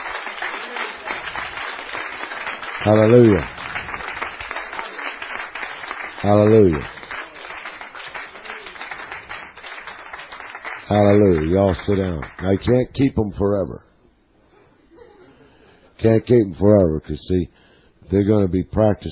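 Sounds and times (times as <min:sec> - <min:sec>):
audience cheering and clapping: 0:00.0 - 0:12.4
speech: 0:02.9 - 0:03.6, 0:06.2 - 0:06.9, 0:10.9 - 0:13.9, 0:16.0 - 0:19.1.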